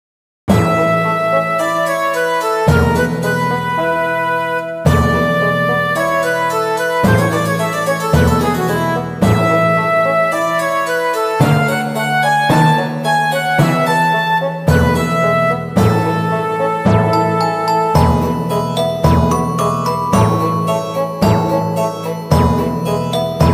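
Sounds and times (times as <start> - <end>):
music: 0.5 - 23.5.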